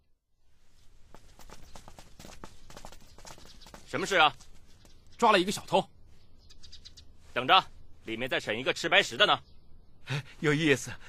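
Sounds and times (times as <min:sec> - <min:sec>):
footsteps of people walking briskly: 0:00.8 - 0:05.3
speech: 0:03.9 - 0:04.5, 0:05.2 - 0:05.9, 0:07.4 - 0:09.5, 0:10.1 - 0:11.0.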